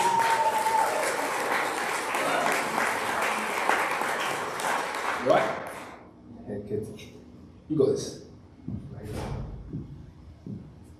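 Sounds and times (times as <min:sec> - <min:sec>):
audience applause: 0:00.0 - 0:06.0
speech: 0:05.2 - 0:05.6, 0:07.7 - 0:08.2.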